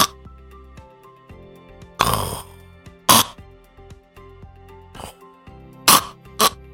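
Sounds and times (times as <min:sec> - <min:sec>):
person imitating sleep apnea breathing: 0:02.0 - 0:03.4, 0:05.0 - 0:05.2, 0:05.9 - 0:06.6.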